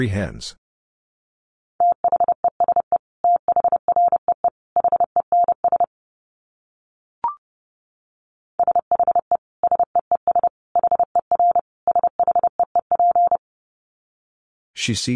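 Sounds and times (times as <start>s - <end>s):
speech: 0.0s - 0.6s, 14.8s - 15.1s
Morse code tones at 30 wpm: 1.8s - 5.9s, 8.6s - 13.4s.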